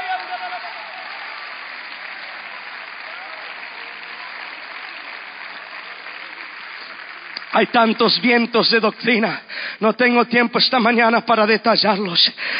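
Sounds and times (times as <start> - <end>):
audience shouting: 0.0 - 4.9
audience applause: 0.0 - 10.2
speech: 7.6 - 12.5.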